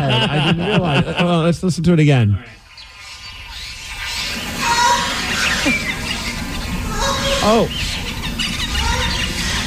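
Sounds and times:
laughter: 0.0 - 1.6, 5.4 - 6.1
speech: 0.1 - 2.6, 7.4 - 7.9
turtle mating squeal: 2.6 - 9.6.

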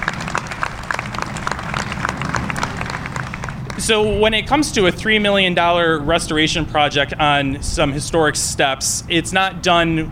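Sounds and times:
audience applause: 0.0 - 4.2
speech: 3.8 - 10.1.

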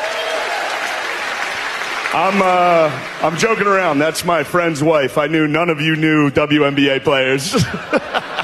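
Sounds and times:
audience applause: 0.0 - 4.6
speech: 2.1 - 8.2
laughter: 7.4 - 8.4.

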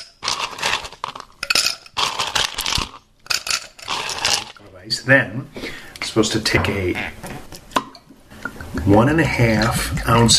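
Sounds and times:
ice cubes filling a glass: 0.0 - 4.6
speech: 4.9 - 7.4, 8.9 - 10.3.

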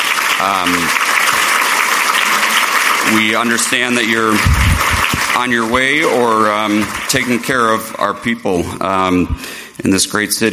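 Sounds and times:
audience applause for elected officials: 0.0 - 8.2
speech: 0.4 - 1.0, 3.0 - 4.6, 5.4 - 10.5.

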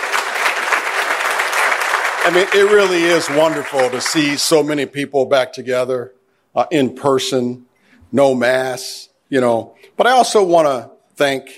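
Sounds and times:
audience clapping: 0.0 - 4.6
speech: 2.2 - 11.5.

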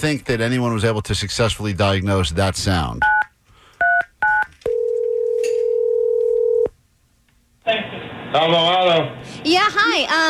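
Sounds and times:
speech: 0.0 - 3.2, 8.4 - 10.2
telephone dialing a number: 3.8 - 6.7.

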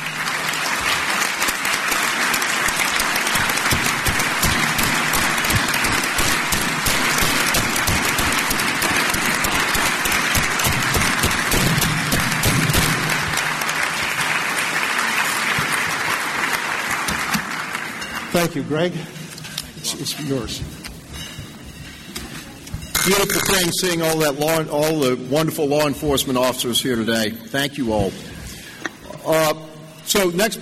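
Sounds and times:
audience applause: 0.0 - 18.3
speech: 18.5 - 19.2, 19.9 - 20.8, 23.1 - 28.2, 29.3 - 30.6.

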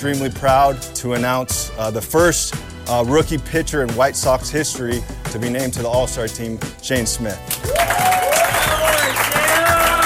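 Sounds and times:
speech: 0.0 - 8.0
baseball crowd at a White Sox game applauding a rookie pitcher: 7.5 - 10.0.

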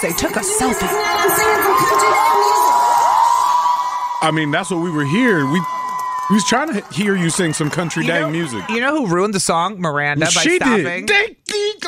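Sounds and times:
speech: 0.0 - 2.6, 4.2 - 11.8
crowd cheering: 0.0 - 9.6
people whooping and yelling: 0.1 - 9.0.

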